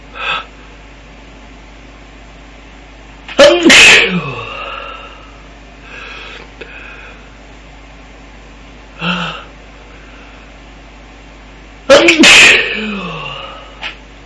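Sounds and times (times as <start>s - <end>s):
man sneezing: 3.4s - 4.8s, 11.9s - 13.7s.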